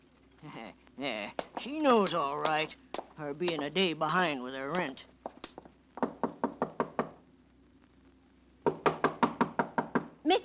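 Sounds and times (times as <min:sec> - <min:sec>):
speech: 0:00.4 - 0:05.1
knuckles knocking on a door: 0:04.8 - 0:07.2, 0:08.6 - 0:10.1.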